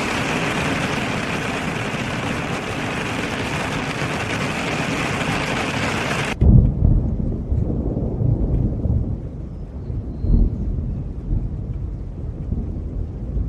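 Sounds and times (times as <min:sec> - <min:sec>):
rain hissing: 0:00.0 - 0:06.4
low rolling rumble: 0:00.0 - 0:13.4.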